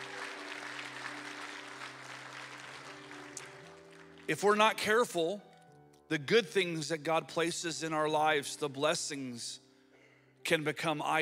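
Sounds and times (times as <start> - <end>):
audience applause: 0.0 - 4.3
speech: 4.3 - 5.5, 6.1 - 9.6, 10.5 - 11.2.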